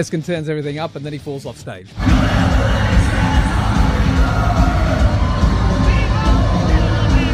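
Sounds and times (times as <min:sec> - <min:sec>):
speech: 0:00.0 - 0:02.8
concert audience singing along: 0:02.0 - 0:07.3
scattered shouts: 0:02.0 - 0:07.3.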